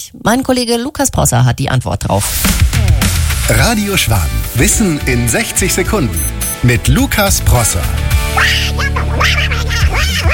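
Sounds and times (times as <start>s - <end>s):
speech: 0.0s - 10.3s
music: 2.2s - 10.3s
cartoon duck character quacking: 8.3s - 10.3s.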